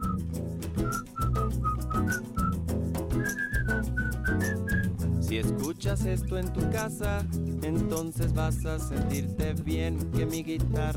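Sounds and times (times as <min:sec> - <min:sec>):
whistled melody hook of a song: 0:00.0 - 0:05.1, 0:08.5 - 0:09.4
speech: 0:05.3 - 0:10.9.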